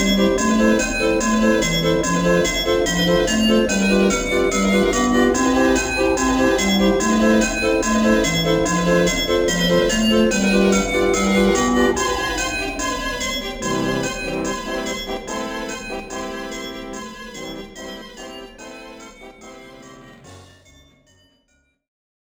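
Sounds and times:
Christmas bells ringing: 0:00.0 - 0:15.0
ambience: 0:00.0 - 0:19.1.

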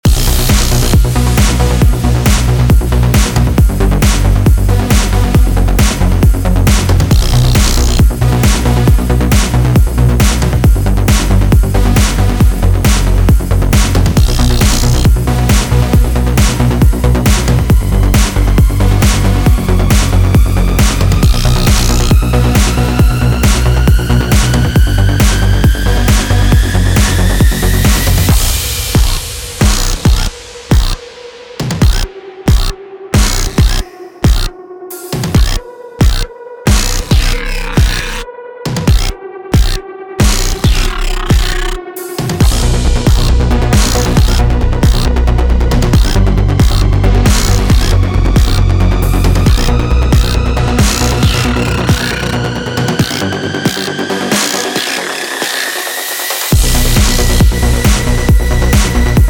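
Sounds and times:
spider boss fight music: 0:00.0 - 0:59.2.

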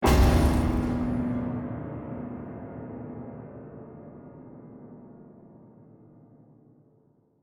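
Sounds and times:
piano shock sting: 0:00.0 - 0:02.4.

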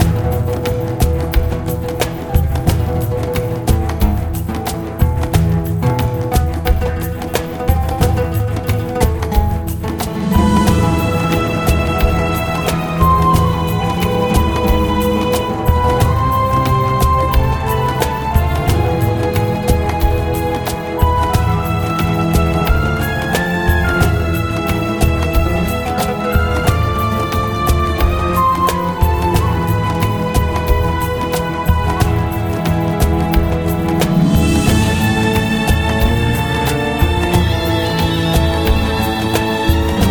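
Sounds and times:
Arabic combat music: 0:00.0 - 0:40.1.

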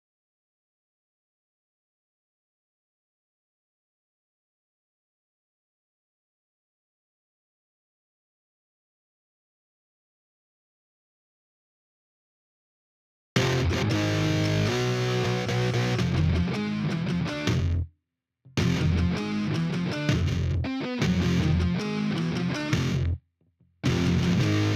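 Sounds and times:
guitars: 0:13.4 - 0:17.8, 0:18.6 - 0:23.2, 0:23.8 - 0:24.7.

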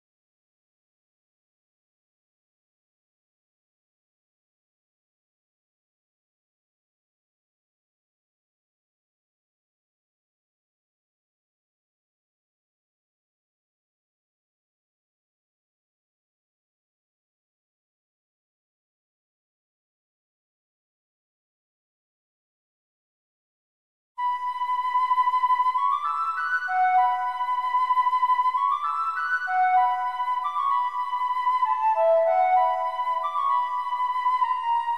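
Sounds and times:
flute: 0:24.2 - 0:34.9.

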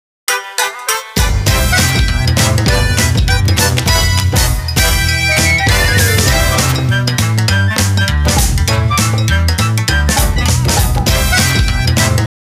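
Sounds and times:
background music: 0:00.3 - 0:12.3.

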